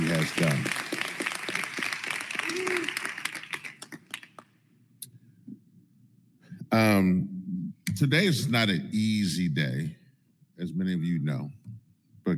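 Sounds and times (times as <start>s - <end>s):
crowd applause: 0.0s - 4.4s
speech: 0.2s - 0.9s, 6.8s - 7.3s, 8.0s - 10.0s, 10.6s - 11.6s.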